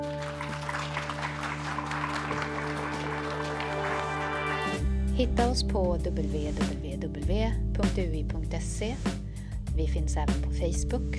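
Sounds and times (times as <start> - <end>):
audience applause: 0.0 - 4.8
speech: 5.2 - 9.2, 9.8 - 11.1.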